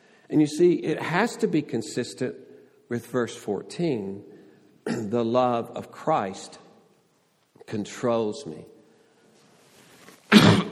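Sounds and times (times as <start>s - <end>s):
speech: 0.3s - 6.6s, 7.7s - 8.7s
cough: 4.8s - 5.2s, 10.3s - 10.7s.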